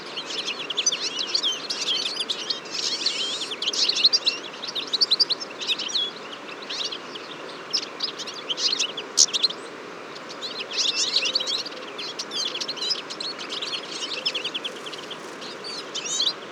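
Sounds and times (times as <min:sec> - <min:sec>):
Eurasian siskin flock chirping: 0:00.0 - 0:09.6, 0:10.2 - 0:16.4.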